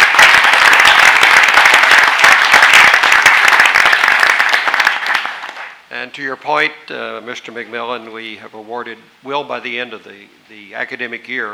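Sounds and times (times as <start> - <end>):
audience applause: 0.0 - 5.8
speech: 6.2 - 11.5.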